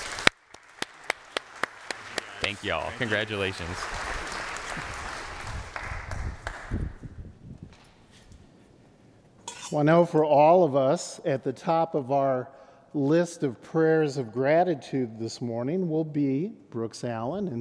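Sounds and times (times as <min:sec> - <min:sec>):
audience applause: 0:00.0 - 0:07.0
speech: 0:02.4 - 0:04.2, 0:09.7 - 0:17.5.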